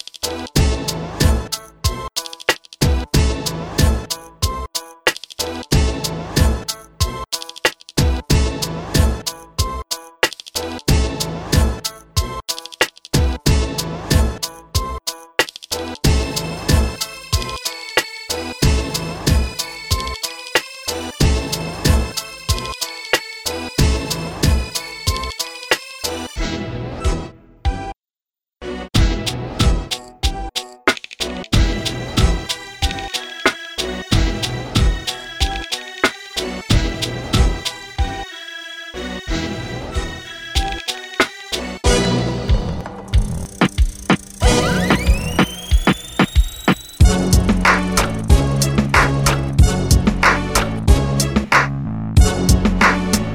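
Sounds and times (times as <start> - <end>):
beat battle music: 0.2 - 15.0, 15.7 - 26.4, 28.9 - 38.3, 39.0 - 53.3.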